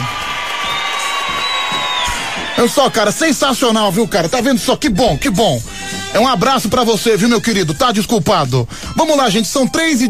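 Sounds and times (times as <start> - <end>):
crowd cheering and applause played on a late-night radio call-in show: 0.0 - 3.7
speech: 2.6 - 10.0.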